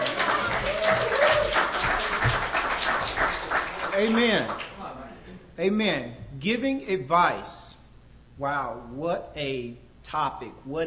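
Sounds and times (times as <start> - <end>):
audience applause: 0.0 - 4.9
speech: 4.0 - 4.6, 5.6 - 7.7, 8.4 - 10.8.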